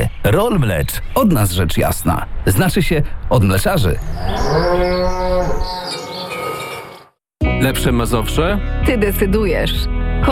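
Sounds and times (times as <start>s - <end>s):
birds chirping: 0.0s - 7.2s
speech: 0.3s - 5.9s, 7.6s - 10.3s
cow mooing: 4.1s - 7.1s.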